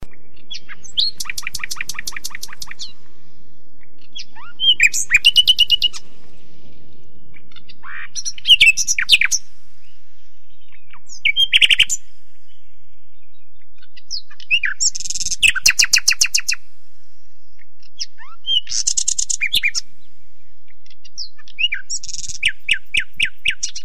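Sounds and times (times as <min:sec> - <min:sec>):
nightingale song: 0:00.0 - 0:23.8.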